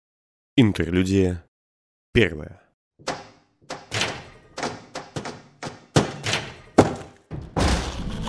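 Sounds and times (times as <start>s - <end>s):
speech: 0.6s - 1.4s, 2.1s - 3.2s
heavy thuds and bangs: 3.0s - 8.0s
door crashing down: 3.0s - 8.2s.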